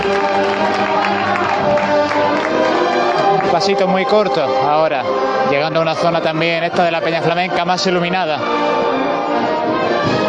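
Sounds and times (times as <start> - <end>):
applause from sidewalks and balconies at a Holy Week procession in Jaén: 0.0 - 4.6
crowd voices: 0.0 - 10.2
speech: 3.5 - 9.1.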